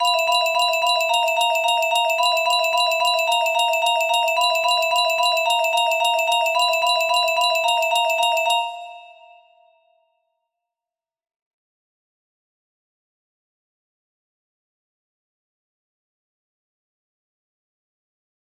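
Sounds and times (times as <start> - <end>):
music box melody: 0.0 - 9.8.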